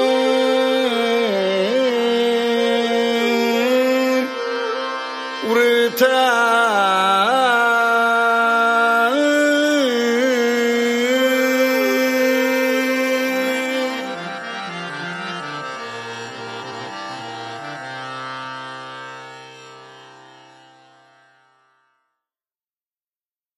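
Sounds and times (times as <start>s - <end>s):
sloka recitation in raga Ritigaula: 0.0s - 16.9s.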